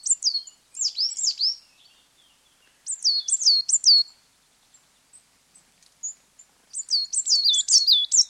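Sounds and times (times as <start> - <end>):
coal tits displaying on territorial boundary: 0.0 - 1.6, 2.8 - 4.2, 6.0 - 8.2.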